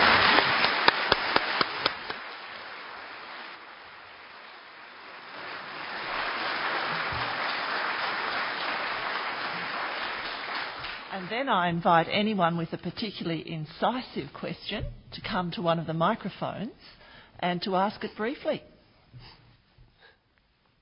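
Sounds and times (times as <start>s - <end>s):
audience applause: 0.0s - 11.3s
speech: 11.3s - 19.4s.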